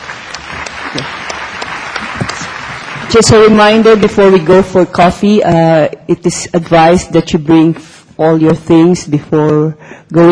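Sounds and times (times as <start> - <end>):
conference audience applauding two speakers: 0.0 - 4.0
speech: 0.9 - 1.2, 3.1 - 10.3.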